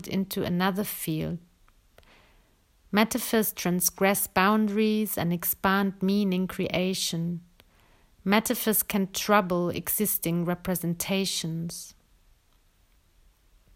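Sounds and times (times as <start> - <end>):
person speaking: 0.0 - 1.5, 2.9 - 7.5, 8.2 - 12.0
person breathing: 2.0 - 2.7, 7.7 - 8.2.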